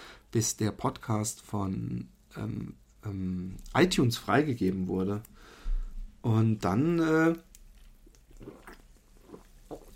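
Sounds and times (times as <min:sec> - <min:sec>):
speech: 0:00.3 - 0:05.6, 0:06.2 - 0:07.5
person drinking: 0:07.8 - 0:09.9.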